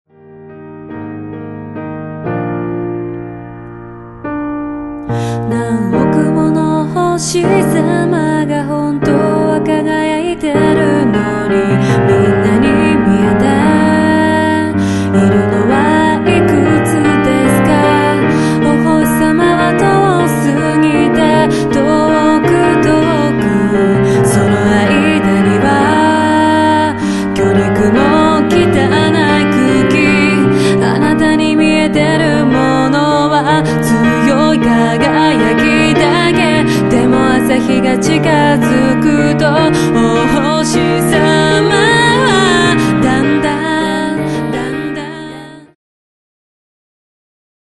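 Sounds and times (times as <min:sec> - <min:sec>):
music: 0:00.1 - 0:45.8.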